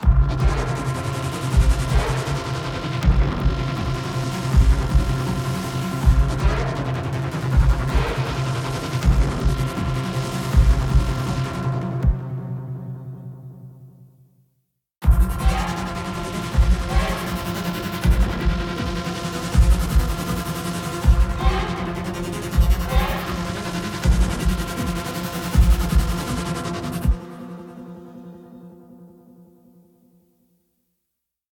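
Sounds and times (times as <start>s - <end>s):
game combat background music: 0.0s - 12.6s, 15.0s - 27.5s.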